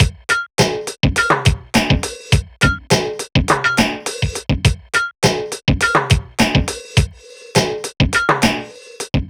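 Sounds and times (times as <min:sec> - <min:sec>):
beats: 0:00.0 - 0:09.2.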